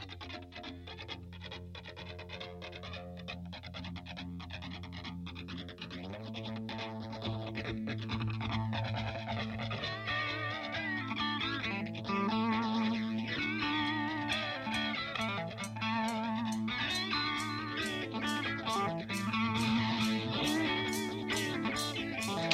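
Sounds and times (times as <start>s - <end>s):
distorted electric guitar riffs: 0.0s - 22.5s
strong sustained bass: 0.0s - 22.5s
1970s rock song recording: 12.1s - 22.5s.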